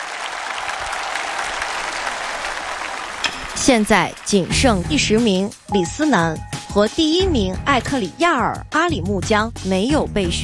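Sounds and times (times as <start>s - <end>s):
audience applause: 0.0s - 5.1s
speech: 3.6s - 10.4s.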